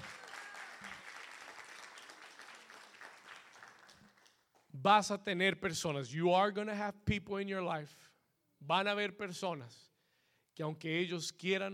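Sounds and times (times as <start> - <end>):
audience applauding: 0.0 - 4.6
speech: 4.8 - 9.9, 10.6 - 11.7.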